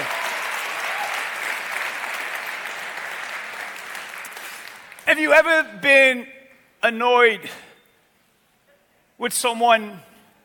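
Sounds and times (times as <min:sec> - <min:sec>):
audience clapping together: 0:00.0 - 0:05.3
speech: 0:05.1 - 0:07.7, 0:09.2 - 0:10.1.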